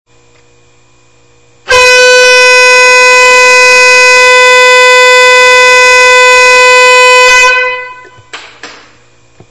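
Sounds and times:
train horn: 1.6 - 8.3.

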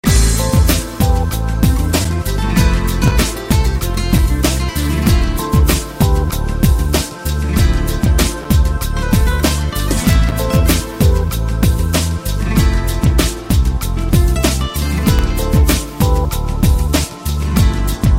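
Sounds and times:
Celtic trance music: 0.0 - 18.1.

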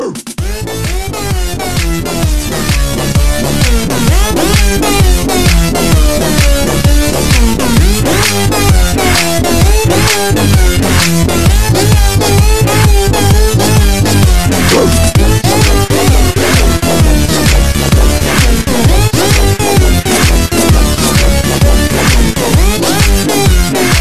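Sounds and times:
big bass: 0.0 - 23.9.

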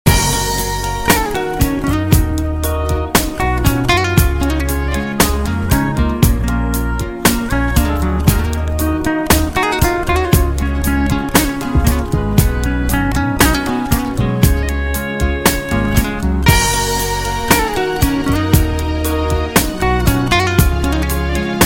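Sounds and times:
Romanian guitar playing: 0.1 - 21.6.

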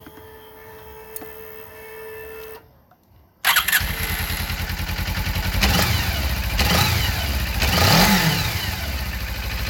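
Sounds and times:
Suzuki motorcycle: 3.4 - 9.6.

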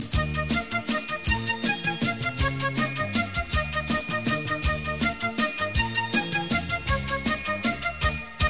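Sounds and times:
Bollywood instrumental tune: 0.0 - 8.4.

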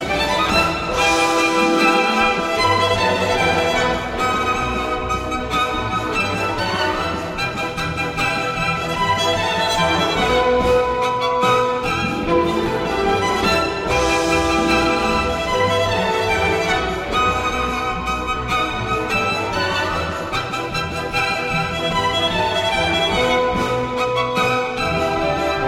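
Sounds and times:
trumpet: 0.0 - 25.6.

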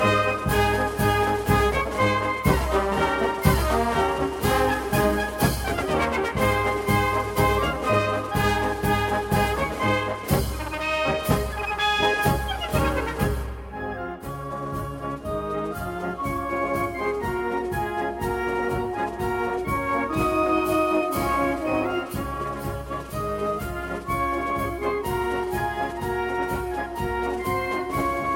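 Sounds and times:
military march: 0.0 - 28.3.

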